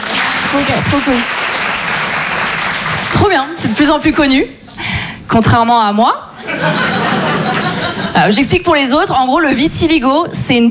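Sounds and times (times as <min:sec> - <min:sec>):
audience applause at a French-speaking show: 0:00.0 - 0:03.6
speech: 0:00.5 - 0:01.4, 0:03.2 - 0:07.0, 0:08.2 - 0:10.6
laughter: 0:06.4 - 0:08.3.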